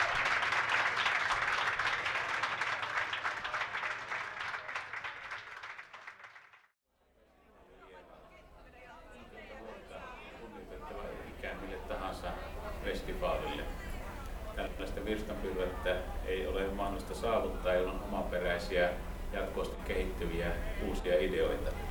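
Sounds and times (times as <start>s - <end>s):
audience applause: 0.0s - 6.7s
crowd chatter: 7.1s - 21.8s.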